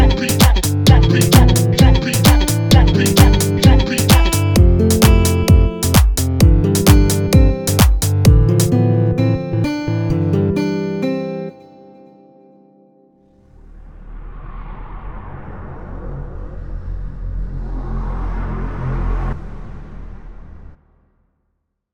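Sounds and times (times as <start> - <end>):
instrumental music: 0.0 - 13.2.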